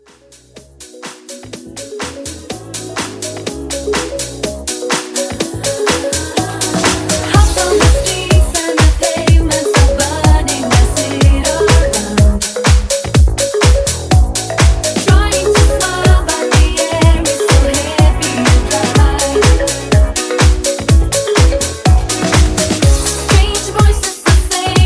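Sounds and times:
house music mashup: 0.0 - 24.8.

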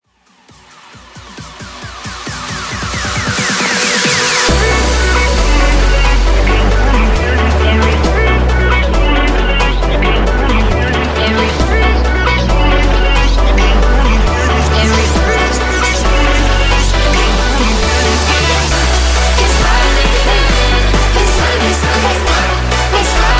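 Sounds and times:
Top40 Vina House dance music: 0.1 - 23.3.

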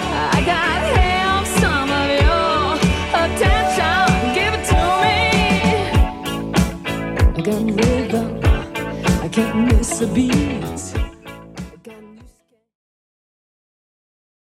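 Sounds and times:
1970s style music loop at 96 BPM: 0.0 - 12.0.

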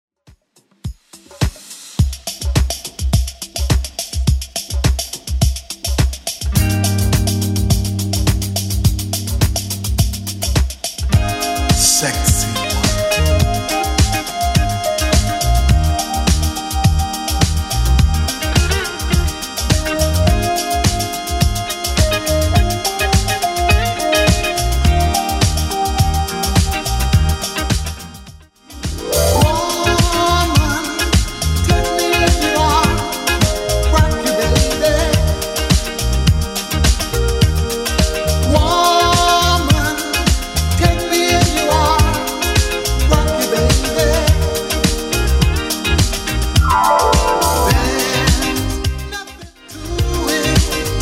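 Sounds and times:
clean 70s groove at 105 BPM: 0.7 - 51.0.

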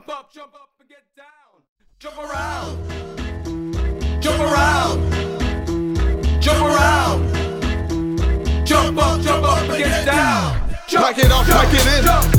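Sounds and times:
house music at 108 BPM: 2.3 - 10.5, 11.2 - 12.3.

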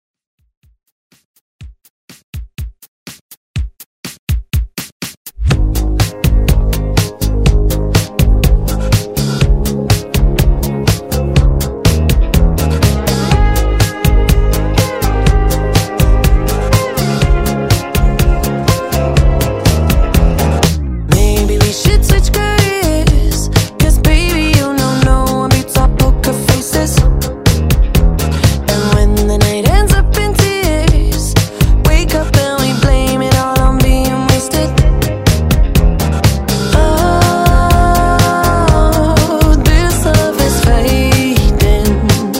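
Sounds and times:
pop music: 4.5 - 42.3.

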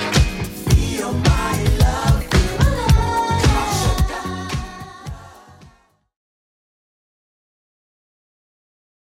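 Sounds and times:
80s Redrum drum machine beat at 110 bpm: 0.0 - 5.8.

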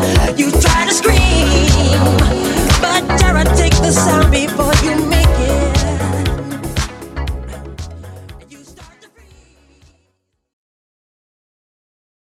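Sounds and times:
epic intro music: 0.0 - 8.5.

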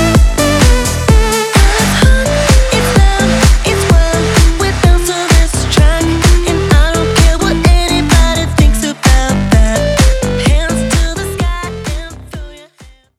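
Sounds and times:
Redrum drum machine beat at 128 BPM: 0.0 - 13.1.

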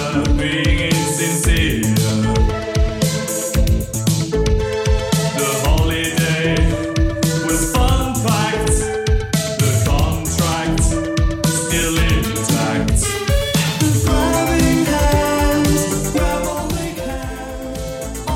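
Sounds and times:
1980s drum machine beat: 0.0 - 18.3.

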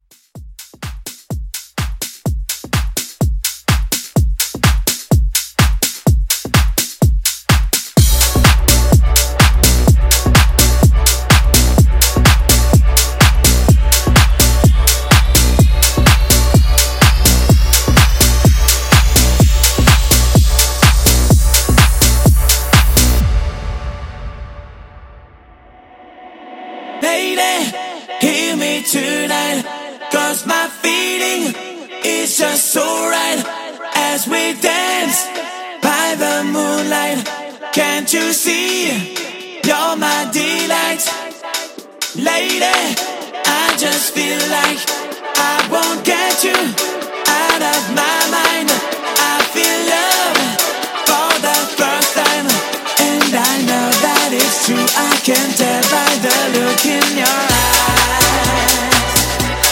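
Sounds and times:
French house remake: 0.0 - 24.6, 25.8 - 59.7.

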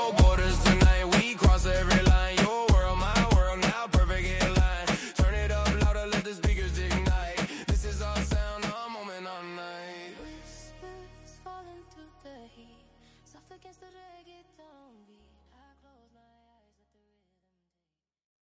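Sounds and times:
reggaeton music: 0.0 - 12.7.

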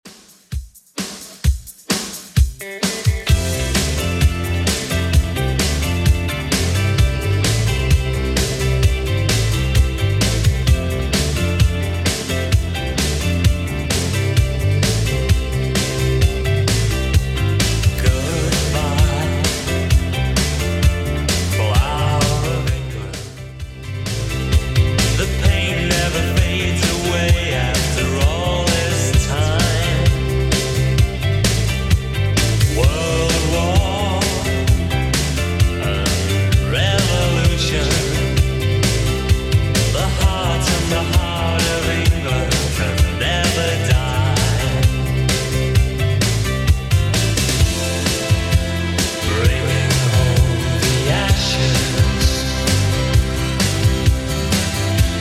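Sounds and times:
80s style beat: 0.0 - 55.1.

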